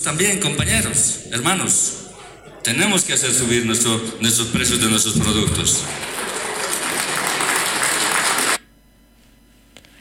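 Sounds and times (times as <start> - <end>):
speech: 0.0 - 2.0, 2.6 - 6.3
applause from assembly of representatives: 4.7 - 8.6.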